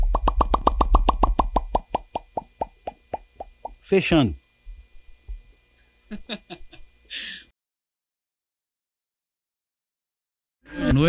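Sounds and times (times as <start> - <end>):
hand slapping against the chin making popping sounds: 0.0 - 3.8
speech: 3.9 - 4.4
laughter: 6.1 - 7.4.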